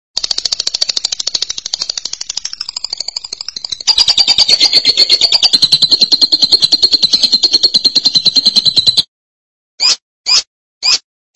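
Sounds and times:
lovebird trilling chatter: 0.2s - 9.0s.

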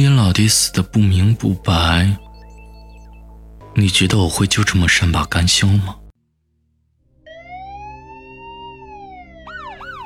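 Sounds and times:
speech: 0.0s - 2.2s, 3.8s - 6.0s
police siren wailing on a quiet coastal highway in light drizzle: 7.2s - 10.0s.

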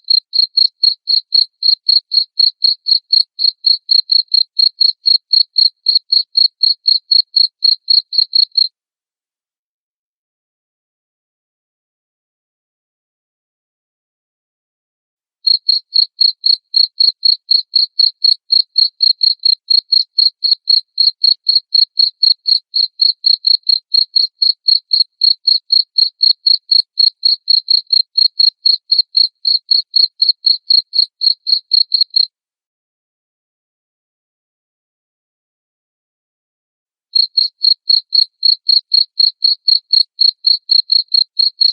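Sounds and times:
cricket chirping: 0.0s - 8.7s, 15.5s - 32.3s, 37.2s - 41.7s.

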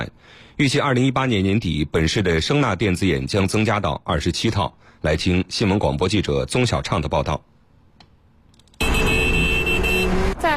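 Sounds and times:
speech: 0.0s - 7.5s
car horn honking repeatedly: 8.8s - 10.5s.

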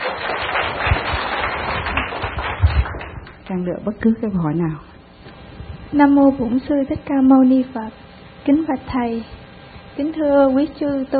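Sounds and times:
audience applause: 0.0s - 3.4s
speech: 3.5s - 4.9s, 5.9s - 9.4s, 10.0s - 11.1s.

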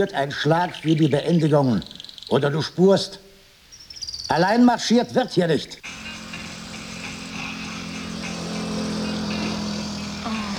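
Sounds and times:
speech: 0.0s - 3.2s, 4.3s - 6.0s
bus driving past: 5.8s - 10.5s.

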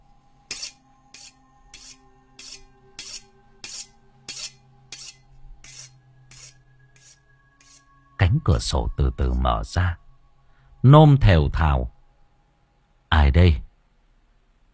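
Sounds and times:
faint steady hum: 0.0s - 14.7s
knife sharpened on stone outside by a well: 0.5s - 7.9s
speech: 8.4s - 10.0s, 10.8s - 12.0s, 13.3s - 13.6s.

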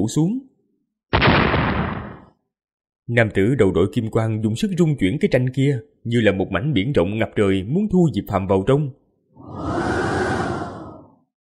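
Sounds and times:
speech: 0.0s - 0.5s, 3.1s - 9.9s
wind gust whooshing: 9.4s - 11.3s.

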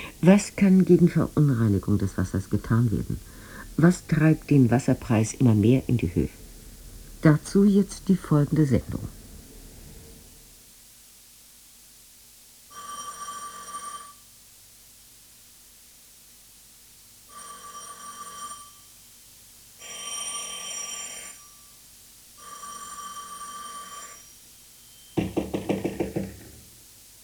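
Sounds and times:
speech: 0.2s - 6.4s, 7.2s - 9.2s
doorbell ringing insistently: 12.7s - 14.2s, 17.3s - 19.0s, 19.8s - 21.4s, 22.4s - 26.6s
loud rapid knocks on a door: 25.2s - 26.7s.

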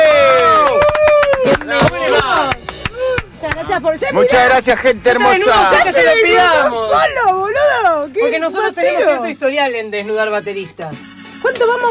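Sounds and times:
applause and cheering in the studio: 0.0s - 3.7s
speech: 3.8s - 11.8s.

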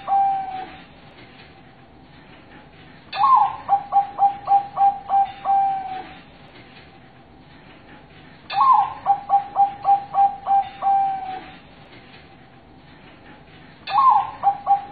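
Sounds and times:
zebra dove cooing master song: 0.0s - 0.8s, 3.2s - 6.2s, 8.5s - 11.6s, 13.9s - 14.9s.

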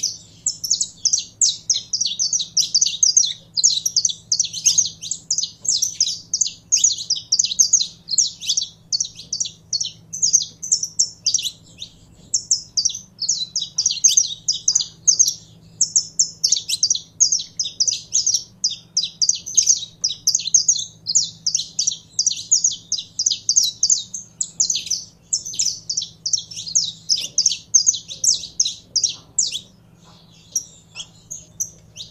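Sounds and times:
canary singing rapid trills: 0.0s - 32.0s.

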